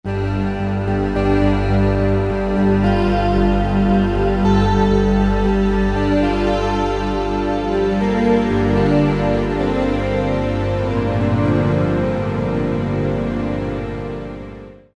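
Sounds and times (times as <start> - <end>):
Yamaha TG33 synthesizer: 0.0 - 14.9.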